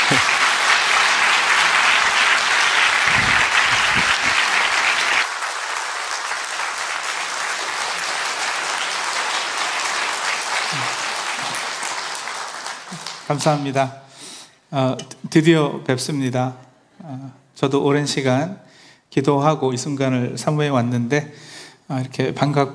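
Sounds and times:
thunderous audience applause: 0.0 - 13.7
speech: 13.3 - 14.0, 14.7 - 22.7.

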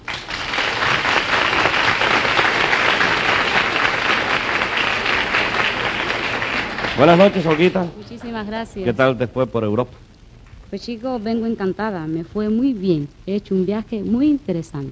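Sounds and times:
warm welcoming applause from audience: 0.0 - 8.4
speech: 7.0 - 10.1, 10.7 - 14.9.

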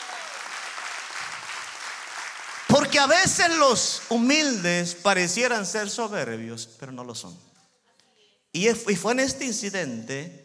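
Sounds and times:
audience applauding: 0.0 - 4.6
speech: 3.0 - 7.5, 8.6 - 10.4.

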